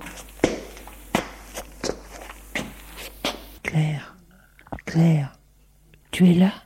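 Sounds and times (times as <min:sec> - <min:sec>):
hesitant footsteps walking toward a door: 0:00.0 - 0:03.6
breathy voice speaking: 0:03.6 - 0:05.4.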